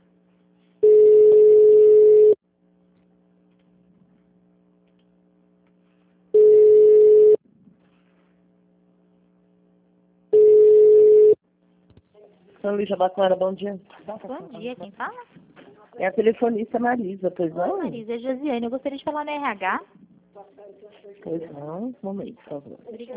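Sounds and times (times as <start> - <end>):
telephone line beeps while a call is transferred to an operator: 0.8 - 2.4, 6.4 - 7.4, 10.4 - 11.4
speech: 12.7 - 15.4, 16.0 - 23.1.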